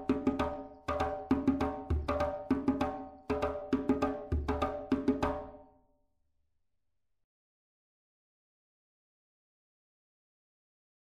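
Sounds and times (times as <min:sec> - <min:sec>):
djembe drumming: 0:00.0 - 0:05.6.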